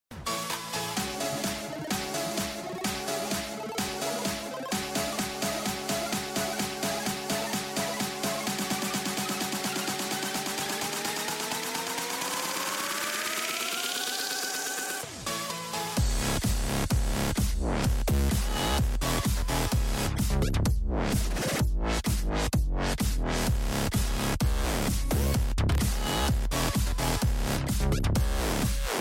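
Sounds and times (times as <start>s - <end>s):
electro house ringtone: 0.2s - 29.0s.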